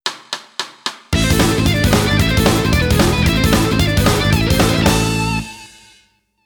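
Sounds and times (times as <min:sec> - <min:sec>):
fast guitar lick: 0:01.2 - 0:05.9.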